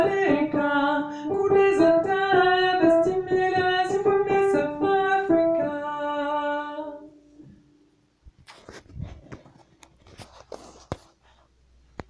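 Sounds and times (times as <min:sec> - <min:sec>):
alto voice singing: 0:00.0 - 0:07.3.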